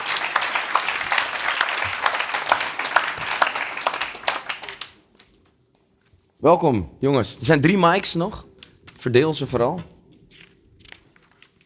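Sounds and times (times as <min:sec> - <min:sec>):
audience applause: 0:00.0 - 0:05.0
speech: 0:06.4 - 0:09.9.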